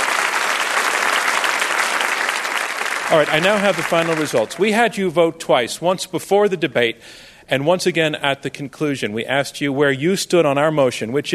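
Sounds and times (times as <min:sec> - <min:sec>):
audience applause: 0:00.0 - 0:04.8
speech: 0:03.1 - 0:11.3.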